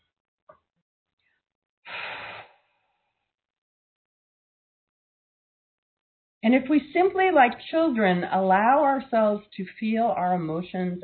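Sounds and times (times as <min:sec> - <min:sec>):
deep breath during a guided talk: 0:01.9 - 0:03.3
speech: 0:06.4 - 0:11.0.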